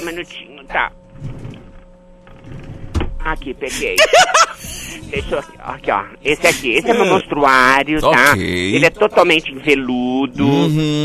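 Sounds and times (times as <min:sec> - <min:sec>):
speech: 0:00.1 - 0:01.4, 0:03.2 - 0:11.0
drawer opening: 0:01.1 - 0:03.2
laughter: 0:03.7 - 0:05.6, 0:06.3 - 0:07.4, 0:08.2 - 0:09.0.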